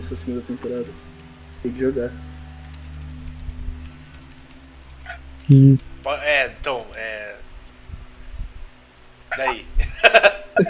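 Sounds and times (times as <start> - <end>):
speech: 0.0 - 2.4, 5.5 - 7.2, 9.4 - 9.7
typing on a computer keyboard: 0.7 - 5.5
laughter: 9.4 - 10.6.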